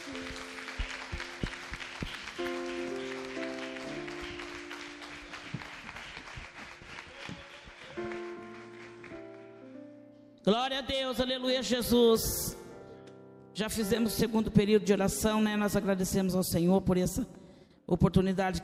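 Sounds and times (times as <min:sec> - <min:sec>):
audience clapping hands: 0:00.0 - 0:09.7
speech: 0:10.5 - 0:12.6, 0:13.6 - 0:18.6.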